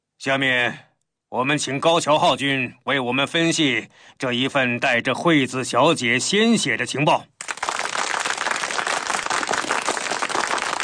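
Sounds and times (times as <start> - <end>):
speech: 0.2 - 7.5
dense applause from many hands: 7.4 - 10.8.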